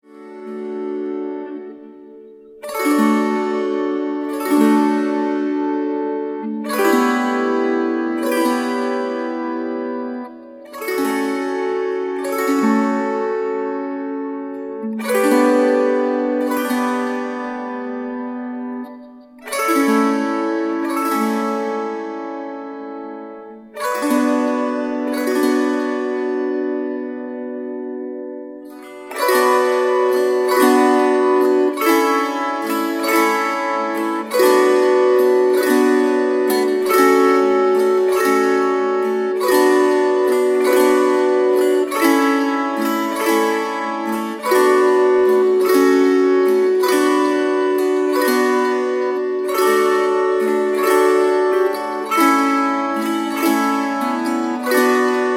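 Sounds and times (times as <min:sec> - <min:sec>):
kantele playing six chords: 0:00.0 - 0:55.3.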